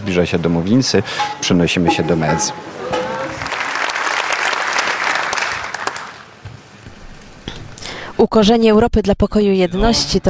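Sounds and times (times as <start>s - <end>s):
speech: 0.0s - 2.9s, 8.2s - 10.2s
sustained audience applause: 2.9s - 6.4s.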